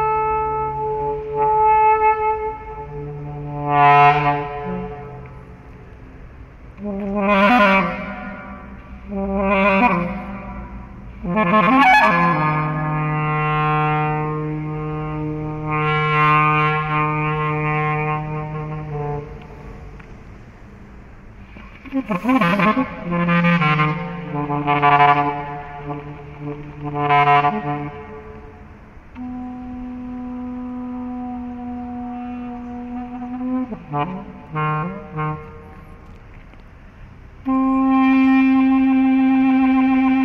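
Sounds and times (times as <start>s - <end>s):
explorative clarinet music: 0.0s - 6.1s, 6.8s - 20.1s, 21.4s - 36.2s, 37.4s - 40.2s.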